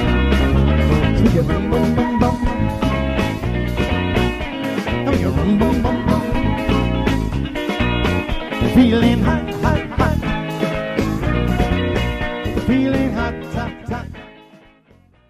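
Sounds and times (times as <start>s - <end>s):
party band playing: 0.0s - 14.7s.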